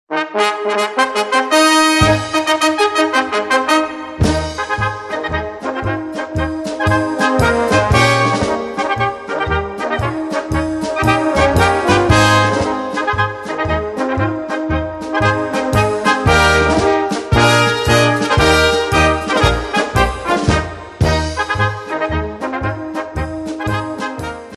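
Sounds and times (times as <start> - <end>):
march music: 0.1 - 24.5.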